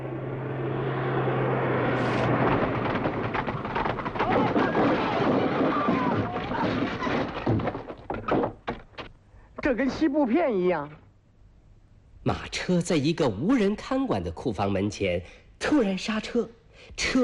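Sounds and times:
reconnaissance aircraft flying overhead: 0.0s - 3.3s
thumps and clatters: 2.3s - 9.2s
speech: 9.7s - 11.0s, 12.2s - 17.2s.

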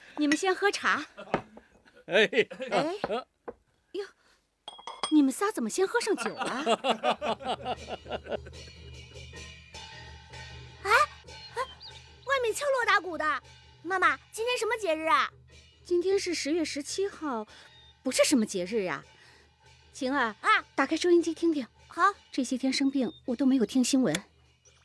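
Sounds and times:
lively talk: 0.2s - 3.3s, 5.1s - 8.4s, 10.9s - 15.3s, 15.9s - 19.1s, 20.0s - 24.2s
glasses clinking in a toast: 4.7s - 5.2s, 6.2s - 6.6s
light laughter: 6.2s - 8.6s.

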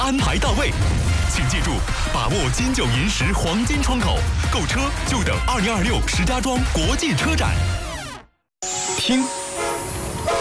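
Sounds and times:
speech: 0.1s - 7.8s, 9.1s - 9.4s
China-Europe freight train horn blast: 9.4s - 10.4s.

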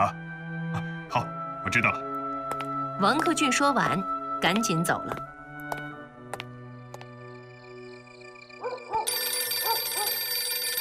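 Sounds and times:
speech: 0.0s - 2.1s, 3.0s - 5.3s
telephone ringing: 9.0s - 10.7s.

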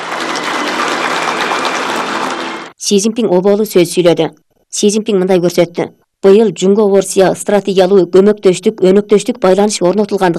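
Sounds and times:
warm applause in Beijing's Great Hall of the People: 0.0s - 2.8s
speech: 2.9s - 10.3s.

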